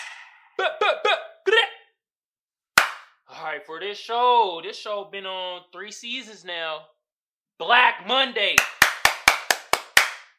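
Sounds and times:
speech: 0.6s - 1.2s, 3.5s - 7.0s, 7.6s - 8.8s
hand clapping: 2.8s - 3.2s, 8.6s - 10.3s.

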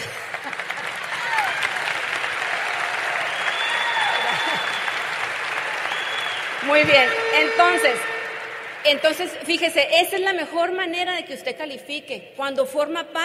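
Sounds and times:
audience applause: 0.0s - 9.8s
speech: 6.7s - 8.1s, 8.8s - 13.2s.

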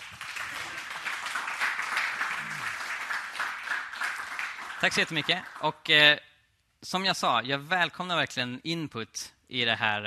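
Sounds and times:
warm audience applause: 0.0s - 5.7s
speech: 4.8s - 10.0s.

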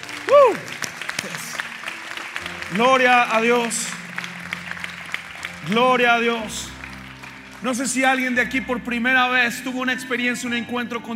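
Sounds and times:
audience applause: 0.0s - 8.5s
speech: 2.7s - 3.9s, 5.6s - 6.6s, 7.6s - 11.1s.

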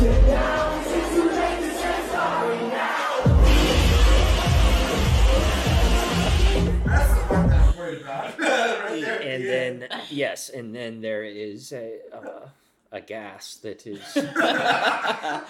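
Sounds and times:
pounding beat: 0.0s - 2.3s, 3.2s - 7.8s
large concert crowd roaring and chanting: 0.0s - 7.8s
laughter: 6.8s - 9.9s, 14.0s - 15.4s
speech: 10.1s - 15.4s.

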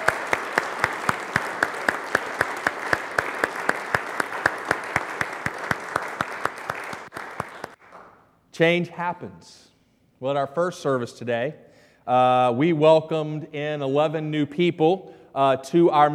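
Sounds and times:
audience applause: 0.0s - 8.2s
speech: 8.6s - 16.1s.

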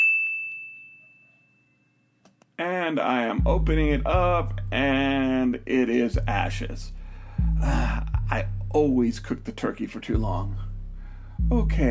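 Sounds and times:
microwave timer ding: 0.0s - 1.9s
speech: 2.6s - 7.0s, 7.6s - 10.7s, 11.4s - 11.8s.

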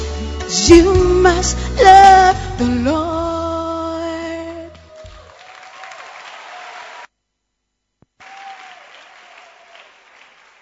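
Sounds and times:
speech: 0.7s - 3.0s
audience clapping: 4.7s - 7.1s, 8.2s - 10.6s.

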